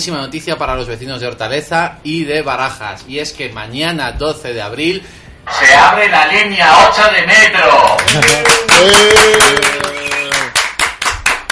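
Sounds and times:
speech: 0.0s - 10.0s
applause: 7.8s - 11.5s.

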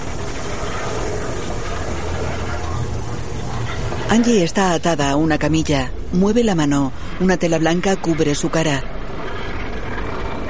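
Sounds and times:
steam venting from a tank: 0.0s - 4.4s
low rumble: 0.0s - 10.4s
speech: 4.1s - 8.9s.

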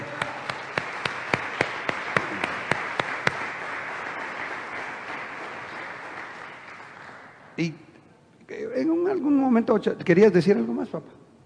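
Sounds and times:
audience clapping: 0.0s - 7.7s
speech: 7.6s - 7.8s, 8.8s - 11.2s.

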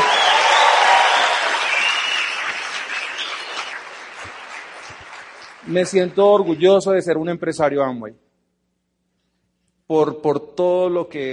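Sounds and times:
cheering: 0.0s - 5.2s
large audience applause: 0.0s - 6.9s
speech: 5.7s - 8.2s, 9.9s - 11.3s.

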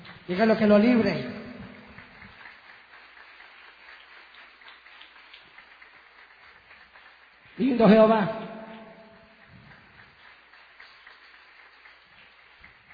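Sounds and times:
audience applause: 0.0s - 9.0s, 9.7s - 12.9s
speech: 0.3s - 1.4s, 7.8s - 8.4s.

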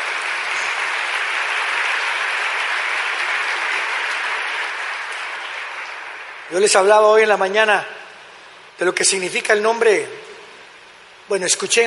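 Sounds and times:
audience applauding loudly: 0.0s - 7.4s
speech: 6.5s - 8.0s, 8.8s - 10.3s, 11.3s - 11.8s.

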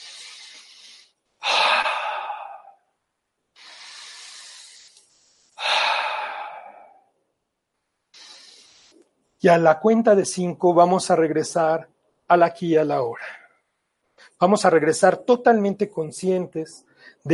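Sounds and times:
slow deep breathing during a guided relaxation: 0.0s - 2.9s, 3.6s - 7.1s, 8.2s - 9.0s
speech: 9.4s - 13.3s, 14.4s - 17.3s.

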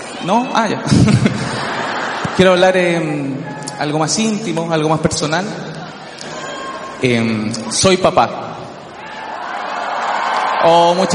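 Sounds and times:
speech: 0.2s - 1.5s, 2.4s - 5.8s, 7.0s - 8.6s, 10.6s - 11.1s
laughter: 0.8s - 3.2s
audience applause: 9.1s - 11.1s.

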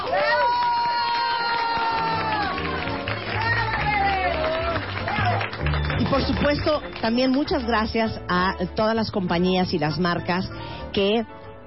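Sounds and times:
whoops and shouting voices: 0.0s - 5.4s
studio crowd applause: 0.0s - 7.8s
speech: 6.2s - 11.4s.

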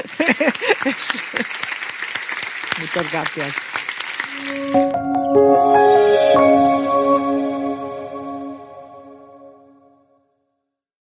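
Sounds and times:
laughter: 0.0s - 1.6s
audience applause: 0.0s - 5.9s
speech: 0.2s - 1.7s, 2.8s - 3.8s, 4.4s - 6.7s.

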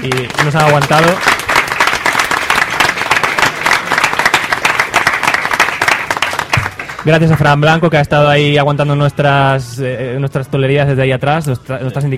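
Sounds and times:
speech: 0.0s - 1.4s, 7.0s - 12.1s
audience applause: 0.0s - 7.4s.

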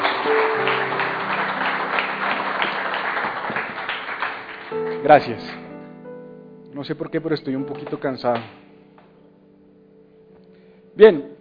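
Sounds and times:
applause: 0.0s - 5.6s
speech: 5.0s - 5.6s, 6.8s - 8.6s, 11.0s - 11.3s.

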